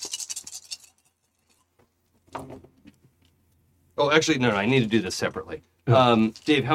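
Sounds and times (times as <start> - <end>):
dice rattling: 0.0 - 1.1
speech: 4.0 - 6.7.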